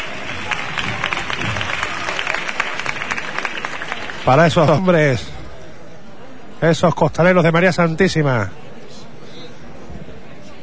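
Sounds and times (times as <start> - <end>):
street crowd applause: 0.0 - 5.3
faint murmur of voices: 0.0 - 10.6
speech: 4.2 - 5.4, 6.6 - 8.6.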